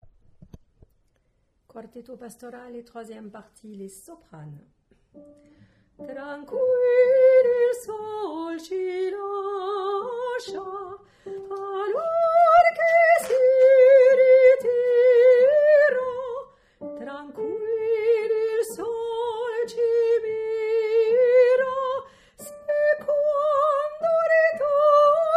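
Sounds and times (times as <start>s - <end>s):
soprano singing: 6.0s - 25.3s.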